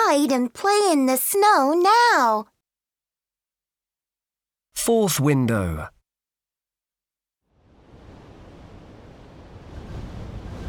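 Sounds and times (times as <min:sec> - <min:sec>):
speech: 0:00.1 - 0:02.5, 0:04.8 - 0:06.0
wind blowing: 0:07.6 - 0:10.6.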